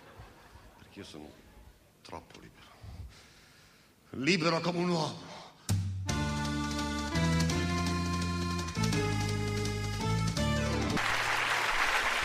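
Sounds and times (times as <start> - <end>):
speech: 1.0 - 1.5, 2.1 - 3.3, 4.1 - 5.3
song's final sustained chords: 6.1 - 11.0
audience applause: 10.8 - 12.2.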